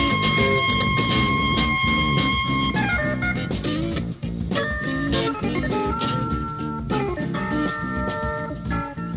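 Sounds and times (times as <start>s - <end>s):
fuzzy guitar jam: 0.0s - 9.1s.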